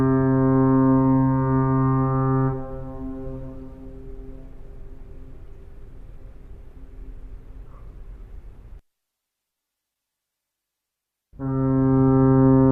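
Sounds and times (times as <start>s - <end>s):
fog horn: 0.0s - 5.4s, 11.4s - 12.7s.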